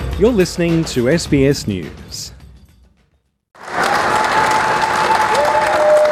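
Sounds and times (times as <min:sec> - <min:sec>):
speech: 0:00.2 - 0:02.3
crowd cheering: 0:03.6 - 0:06.1.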